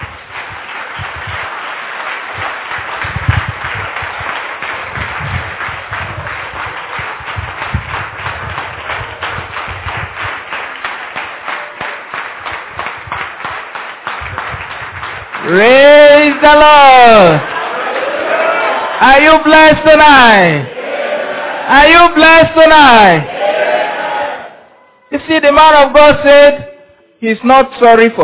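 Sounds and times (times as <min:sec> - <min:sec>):
audience applause: 0:00.0 - 0:19.5
speech: 0:15.5 - 0:15.7, 0:16.4 - 0:17.5, 0:19.0 - 0:20.8, 0:21.7 - 0:23.4, 0:25.2 - 0:26.6, 0:27.2 - 0:28.2.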